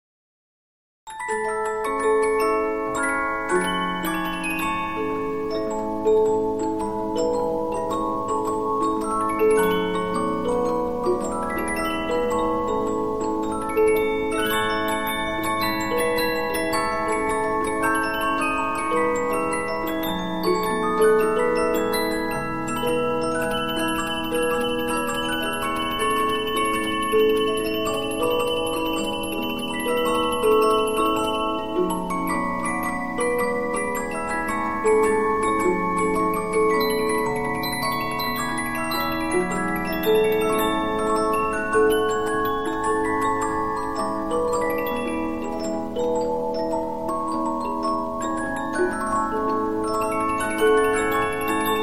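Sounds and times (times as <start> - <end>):
Polyphon 15-inch disc music box playing: 1.1 - 51.8.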